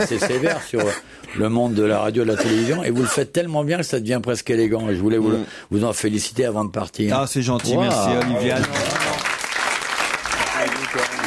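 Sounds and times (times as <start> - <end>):
laughter: 0.0 - 1.0
speech: 0.0 - 9.0
applause: 7.6 - 11.2.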